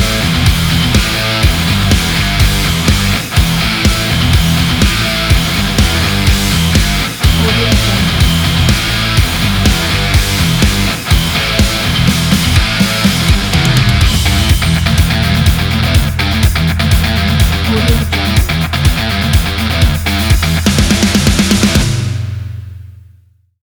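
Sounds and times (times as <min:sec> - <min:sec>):
hard rock music: 0:00.0 - 0:22.6
laughter: 0:05.6 - 0:09.1, 0:17.5 - 0:18.4.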